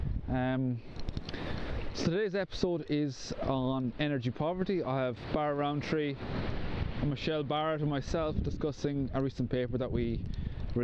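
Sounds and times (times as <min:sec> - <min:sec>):
speech: 0:00.3 - 0:01.2, 0:02.0 - 0:10.8
Atlantic ocean waves washing: 0:03.3 - 0:09.2.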